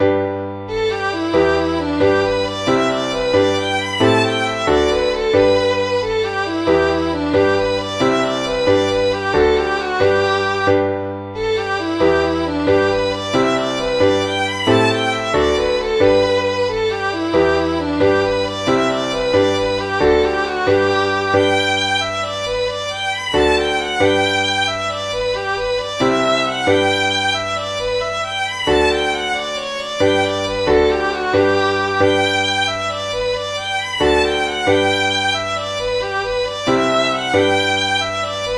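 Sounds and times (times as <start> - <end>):
Irish jig: 0.0 - 38.5.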